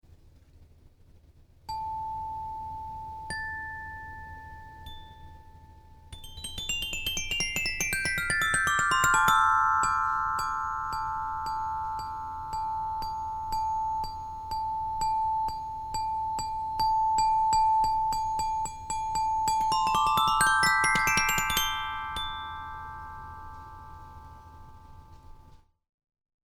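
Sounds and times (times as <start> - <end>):
xylophone: 1.7 - 25.5.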